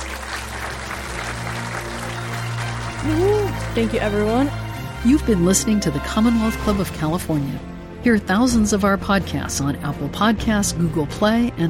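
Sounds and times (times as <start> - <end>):
audience applause: 0.0 - 5.0
speech: 3.0 - 11.6.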